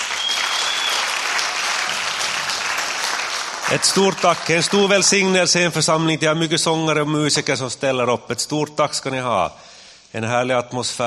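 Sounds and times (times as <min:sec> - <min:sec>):
audience applauding: 0:00.0 - 0:05.5
speech: 0:03.7 - 0:11.0.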